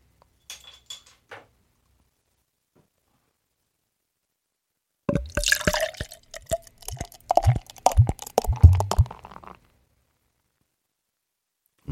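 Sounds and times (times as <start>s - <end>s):
beer glugging out of a bottle into a glass: 5.1s - 9.6s.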